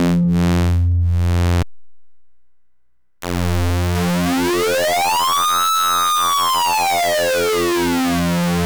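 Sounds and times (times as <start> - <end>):
DVCO synthesizer oscillator with sync and external LFO: 0.0 - 1.6, 4.0 - 8.5.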